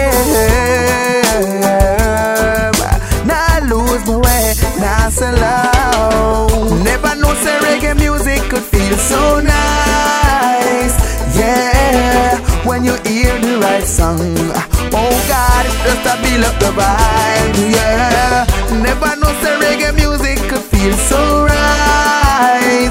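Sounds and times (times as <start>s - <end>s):
solo reggae music: 0.0s - 22.8s.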